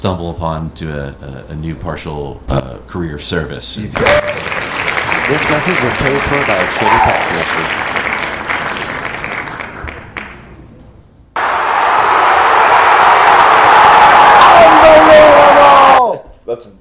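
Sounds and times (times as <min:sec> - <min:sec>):
speech: 0:00.0 - 0:04.5, 0:05.3 - 0:07.9
rugby stadium crowd roaring and cheering: 0:04.0 - 0:10.0, 0:11.4 - 0:16.2
scattered applause in a rugby stadium: 0:04.0 - 0:10.5, 0:11.4 - 0:16.0.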